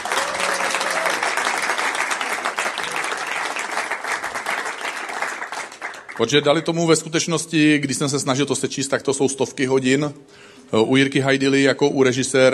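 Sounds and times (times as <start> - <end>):
audience applause: 0.0 - 6.3
speech: 6.2 - 12.5.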